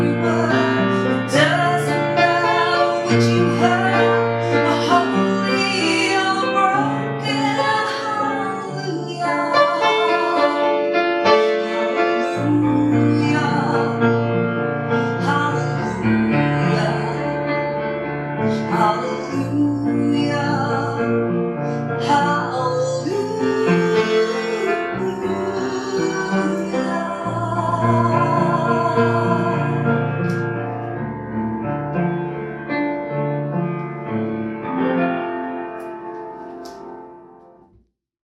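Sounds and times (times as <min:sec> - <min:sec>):
person singing: 0:00.0 - 0:14.2, 0:18.5 - 0:30.1
piano: 0:00.0 - 0:38.0.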